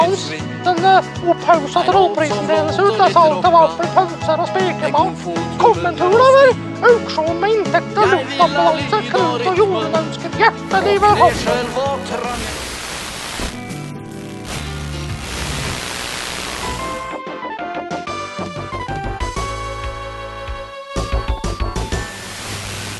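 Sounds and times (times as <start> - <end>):
speech: 0.1 - 12.6
rain: 11.1 - 17.1, 22.1 - 22.9.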